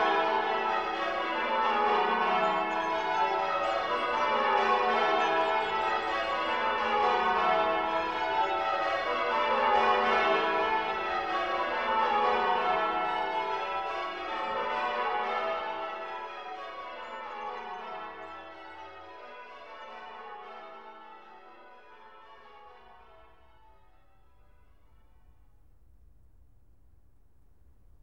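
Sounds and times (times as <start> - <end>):
dawn chorus: 0.0 - 21.7
college bells ringing a change-ringing method: 0.0 - 25.4.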